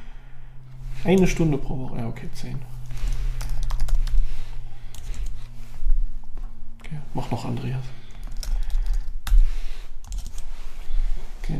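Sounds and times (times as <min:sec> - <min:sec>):
steady low electrical hum: 0:00.0 - 0:11.5
speech: 0:01.0 - 0:02.8, 0:07.2 - 0:08.0
rapid typing on a computer keyboard: 0:03.4 - 0:04.2, 0:08.2 - 0:09.4, 0:10.0 - 0:10.4.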